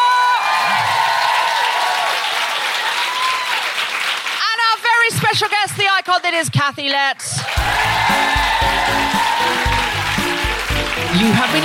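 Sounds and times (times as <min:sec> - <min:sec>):
whoops and cheers: 0:00.0 - 0:03.9, 0:07.4 - 0:11.6
large audience applause: 0:00.0 - 0:05.0, 0:07.4 - 0:11.6
speech: 0:05.4 - 0:09.7, 0:11.0 - 0:11.6.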